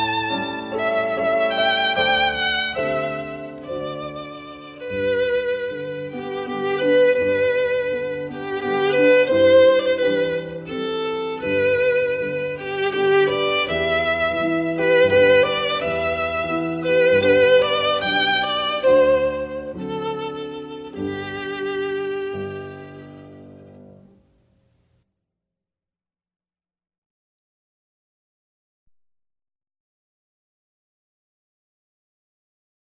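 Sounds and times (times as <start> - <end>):
waltz music: 0.0 - 24.1.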